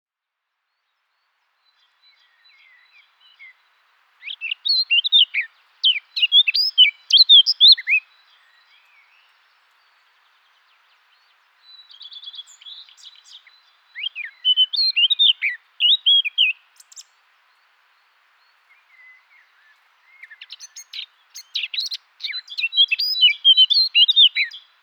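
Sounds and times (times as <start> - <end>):
Eurasian blackcap singing: 4.2 - 8.0, 11.7 - 17.1, 20.0 - 24.7.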